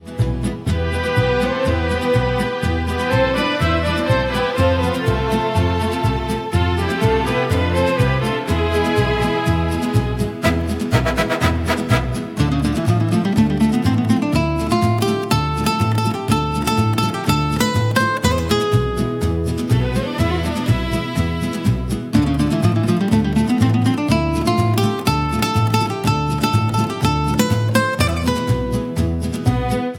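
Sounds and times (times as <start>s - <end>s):
wild west music: 0.0s - 29.9s.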